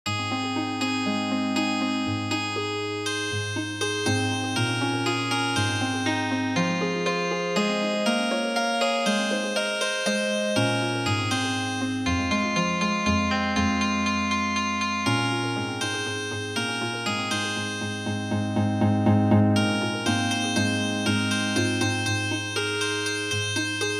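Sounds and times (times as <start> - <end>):
healing harp music: 0.4 - 23.9.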